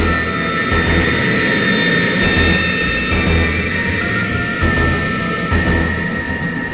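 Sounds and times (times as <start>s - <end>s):
carrier aircraft engine roar climbing with a hydrogen bomb: 0.0s - 6.7s.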